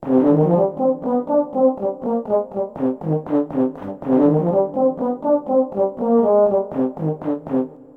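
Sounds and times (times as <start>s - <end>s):
tuba: 0.0s - 7.9s.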